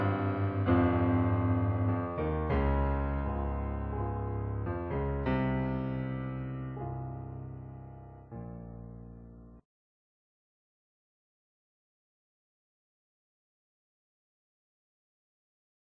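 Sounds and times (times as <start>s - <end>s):
piano: 0.0s - 9.7s.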